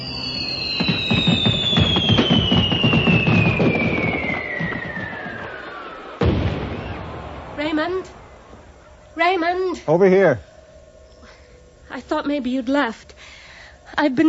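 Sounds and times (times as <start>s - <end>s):
fireworks exploding: 0.0s - 9.0s
speech: 9.6s - 10.5s, 12.0s - 13.3s, 13.9s - 14.2s.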